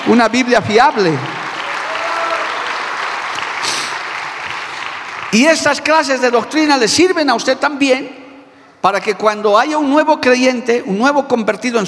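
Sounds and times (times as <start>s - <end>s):
audience applauding: 0.0s - 6.1s
speech: 0.1s - 1.4s, 5.3s - 8.2s, 8.8s - 11.8s.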